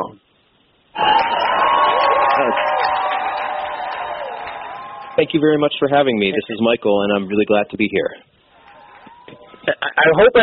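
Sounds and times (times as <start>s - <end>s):
audience applause welcoming a speaker from the Consumer Federation of America: 1.0s - 6.3s, 8.6s - 9.5s
speech: 5.2s - 8.3s, 9.6s - 10.4s.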